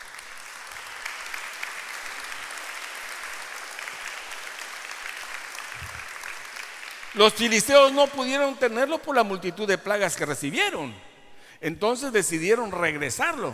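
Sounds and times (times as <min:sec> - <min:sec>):
audience applauding: 0:00.0 - 0:08.5
speech: 0:07.1 - 0:13.5.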